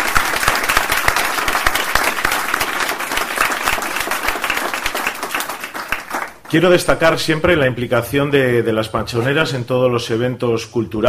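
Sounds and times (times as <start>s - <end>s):
audience applause: 0.0s - 6.5s
speech: 6.5s - 11.0s.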